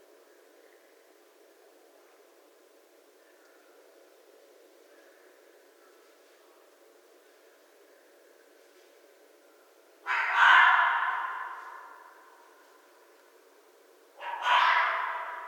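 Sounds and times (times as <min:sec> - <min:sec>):
North American red fox: 0:10.0 - 0:12.5, 0:14.2 - 0:15.4.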